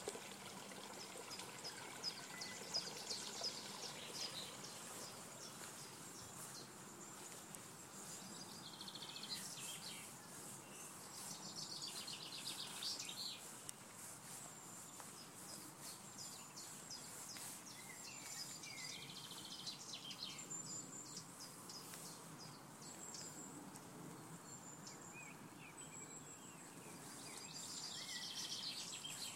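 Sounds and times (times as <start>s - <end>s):
nature sounds: 0.0s - 29.3s.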